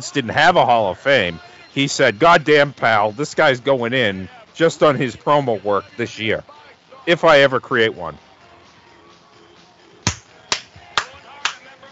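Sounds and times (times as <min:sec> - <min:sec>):
speech: 0:00.0 - 0:08.3
hand clapping: 0:10.1 - 0:11.8.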